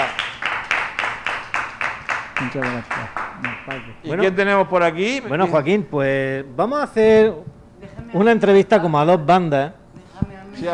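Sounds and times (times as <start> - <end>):
audience applause: 0.0 - 3.9
speech: 2.4 - 7.5, 8.1 - 9.8, 10.6 - 10.7.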